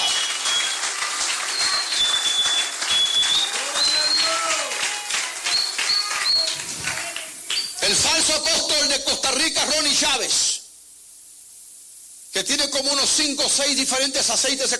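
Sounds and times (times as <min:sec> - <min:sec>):
audience applauding and cheering: 0:00.0 - 0:07.8
speech: 0:08.5 - 0:10.5, 0:12.4 - 0:14.7.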